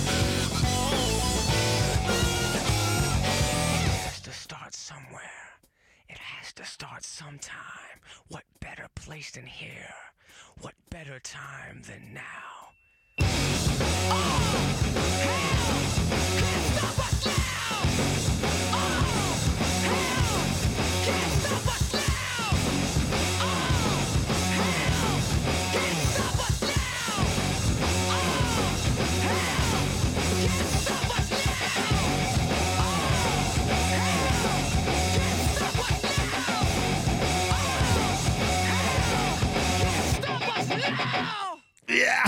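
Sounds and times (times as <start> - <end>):
rap-rock song with shouted vocals: 0.0 - 4.3, 13.2 - 42.2
speech: 6.6 - 15.3.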